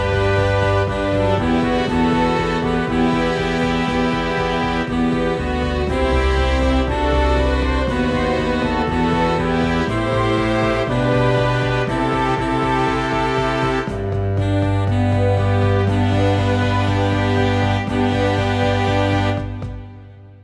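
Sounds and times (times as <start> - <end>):
slow foxtrot music played by full ensemble: 0.0 - 20.4.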